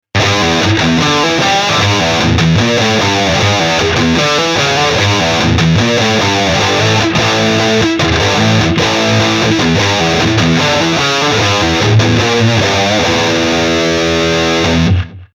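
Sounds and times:
electric guitar through Eleven Rack DC Modern amp model: 0:00.0 - 0:15.3.

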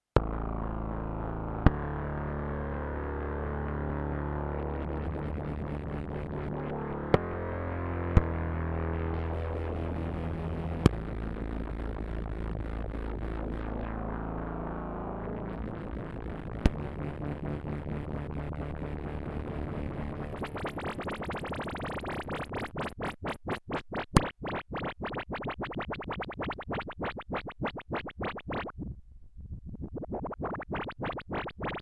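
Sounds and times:
polymod filtered synthesizer: 0:00.2 - 0:31.8.

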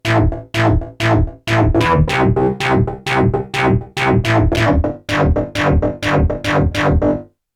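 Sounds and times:
Modal Argon8 synthesizer: 0:00.0 - 0:07.3.

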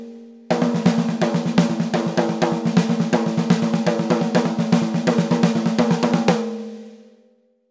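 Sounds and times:
Mapex snare drum rimshots recorded with SM57 microphone: 0:00.5 - 0:06.7.

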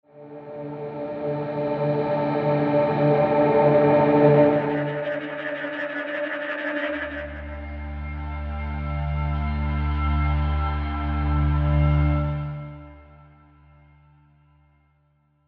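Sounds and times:
ambient guitar beds and drones: 0:00.1 - 0:15.0.

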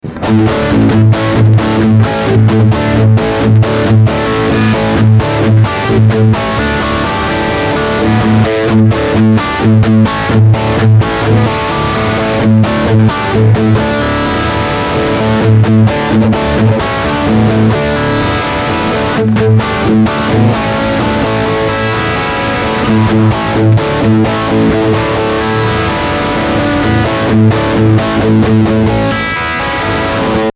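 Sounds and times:
humbucker electric guitar: 0:00.0 - 0:30.5.

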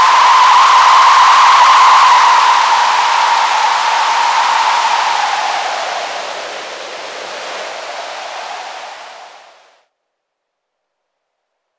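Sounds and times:
VCA filtered noise with deformed feedback: 0:00.0 - 0:09.6.

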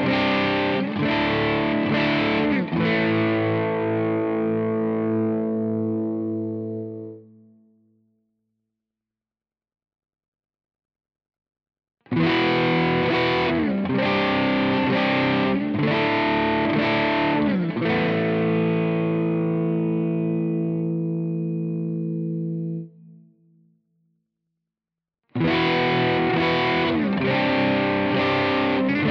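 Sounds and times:
crunch guitar chords in all positions: 0:00.0 - 0:07.3, 0:12.1 - 0:22.9, 0:25.4 - 0:29.0.

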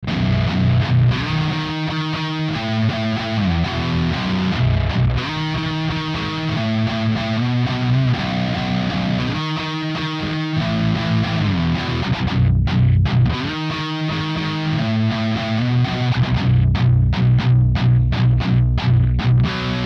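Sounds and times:
electric guitar through Kemper Profiler Stage: 0:00.0 - 0:19.8.

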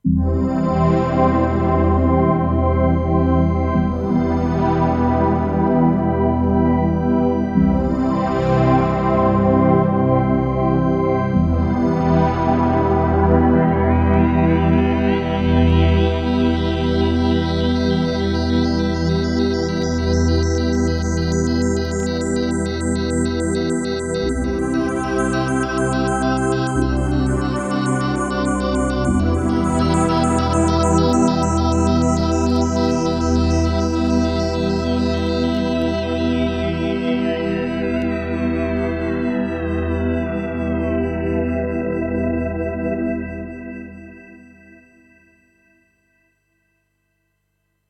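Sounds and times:
FM heavenly synth pad: 0:00.1 - 0:44.0.

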